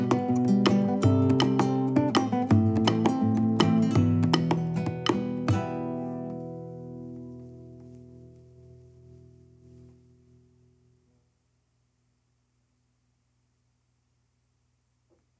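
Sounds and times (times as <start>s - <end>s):
instrumental accompaniment: 0.0s - 10.0s.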